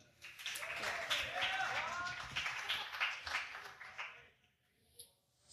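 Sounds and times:
audience applause: 0.0 - 4.2
people whooping and shouting: 0.5 - 3.2.

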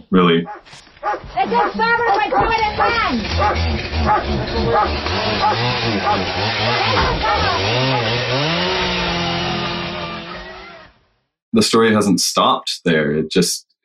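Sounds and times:
speech: 0.1 - 8.8, 11.5 - 13.7
chainsaw used by RCMP officers during a raid on Wet'suwet'en territory: 1.0 - 11.0
agitated voices talking and shouting: 1.4 - 10.9.

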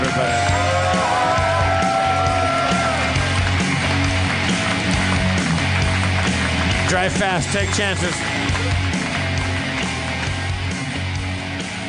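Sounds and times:
high whoops: 0.0 - 3.3
audience cheering and clapping: 0.0 - 11.0
speech: 6.9 - 8.4.

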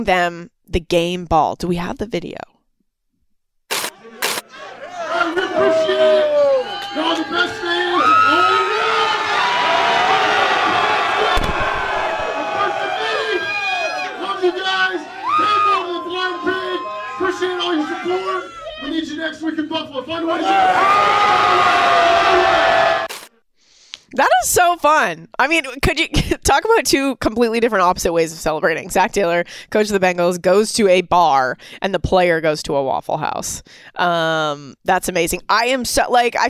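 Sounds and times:
speech: 0.0 - 2.5, 19.4 - 22.5, 24.1 - 36.4
packed bar crowd cheering and shouting: 3.8 - 23.2.

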